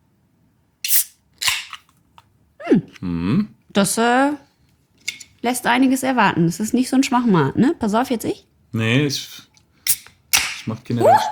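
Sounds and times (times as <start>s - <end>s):
beer can being opened: 0.8s - 1.9s
speech: 2.7s - 4.5s, 5.4s - 9.5s, 10.6s - 11.3s.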